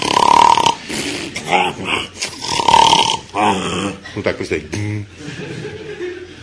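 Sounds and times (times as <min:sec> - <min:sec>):
voice imitating snoring: 0:00.0 - 0:04.0
speech: 0:01.5 - 0:02.2, 0:03.4 - 0:05.9
laughter: 0:05.1 - 0:06.4.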